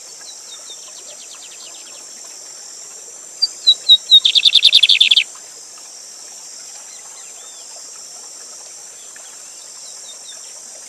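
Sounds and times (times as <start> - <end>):
falling water hiss: 0.0 - 10.8
lined seedeater singing: 3.7 - 5.2.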